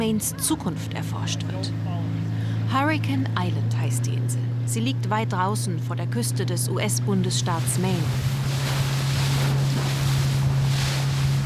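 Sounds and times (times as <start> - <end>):
charter boat engine droning off the coast of Maine: 0.0 - 11.4
speech: 0.1 - 8.8
wind buffeting: 7.1 - 11.4
rushing sea water and spray: 7.5 - 11.4.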